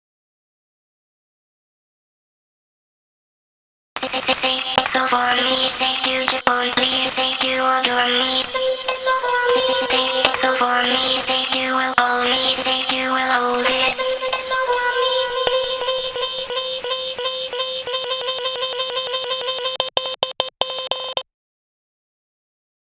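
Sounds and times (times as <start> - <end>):
main vocals: 4.0 - 20.0.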